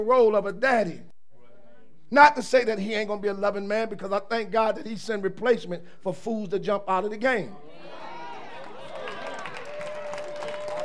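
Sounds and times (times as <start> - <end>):
speech: 0.0 - 1.1, 2.1 - 8.0
audience clapping hands: 8.5 - 10.8.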